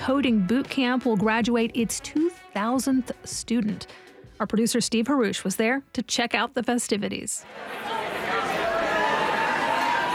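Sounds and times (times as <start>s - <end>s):
speech: 0.0s - 8.0s
crowd chatter at a party: 7.4s - 10.1s.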